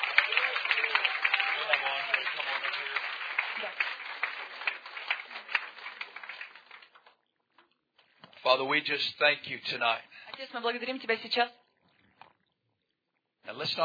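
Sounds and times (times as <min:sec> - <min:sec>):
church congregation applauding during a service: 0:00.0 - 0:07.2
speech: 0:08.5 - 0:11.6, 0:13.6 - 0:13.8.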